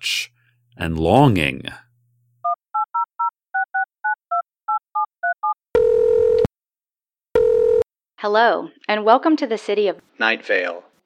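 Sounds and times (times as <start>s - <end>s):
speech: 0.8s - 1.9s, 8.2s - 11.0s
telephone keypad dialing tones: 2.4s - 6.5s.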